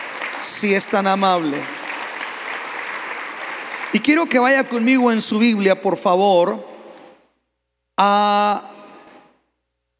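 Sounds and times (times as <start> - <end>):
audience applause: 0.0 - 5.2
speech: 0.4 - 1.8, 3.9 - 6.7, 8.0 - 8.7.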